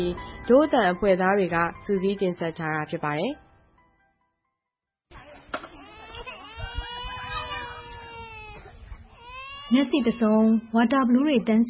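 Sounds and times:
speech: 0.0 - 3.4, 9.7 - 11.6
two-year-old child crying in a tent camp of blue tarpaulins: 5.7 - 10.8.

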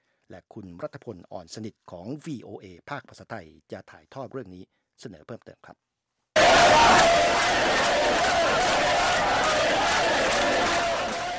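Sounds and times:
speech: 0.3 - 5.9
Iraqi crowd shouting at a recruitment drive for a fighting force: 6.4 - 11.3.

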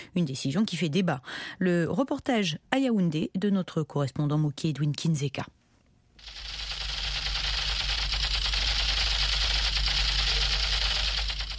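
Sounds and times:
speech: 0.2 - 5.6
toy Kalashnikov rifle fired by a nine-year-old boy in a wooded park in Yaoundé: 6.2 - 11.5.

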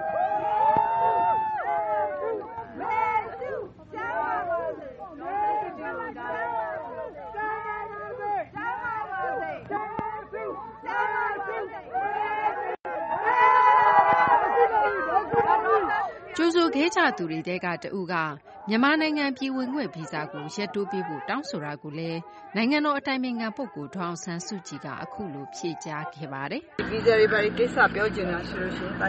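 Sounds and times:
crowd of Burmese and Americans shouting in welcome outside Blair House: 0.0 - 28.4
speech: 16.8 - 29.0.

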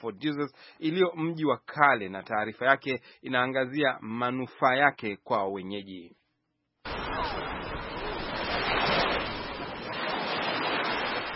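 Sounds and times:
speech: 0.0 - 6.2
gentle Indian Ocean waves lapping the shore by Fort Jesus, Mombasa: 6.9 - 11.3.

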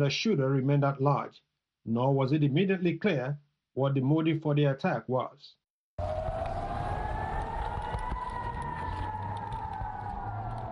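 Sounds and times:
speech: 0.0 - 6.3
air raid sirens over Israel: 6.0 - 10.6.

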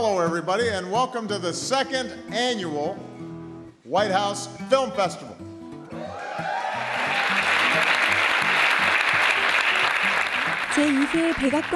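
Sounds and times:
speech: 0.2 - 3.1, 3.9 - 5.3, 10.8 - 11.7
audience cheering and applause: 5.9 - 11.7.

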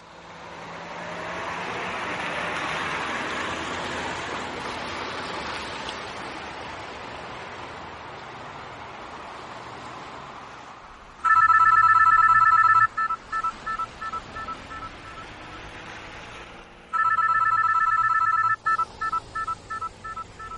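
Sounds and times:
cell phone ringing in a moving car: 11.2 - 15.6, 16.9 - 20.5.

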